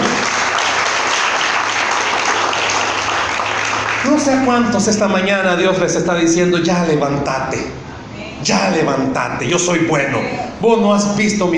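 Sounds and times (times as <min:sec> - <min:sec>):
audience applause: 0:00.0 - 0:04.5
speech: 0:04.2 - 0:07.8, 0:08.4 - 0:11.5.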